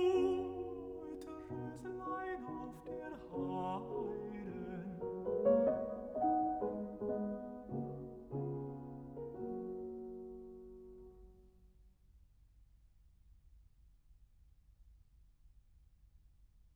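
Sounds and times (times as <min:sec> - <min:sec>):
person singing: 0:00.0 - 0:08.6
piano: 0:00.0 - 0:11.8.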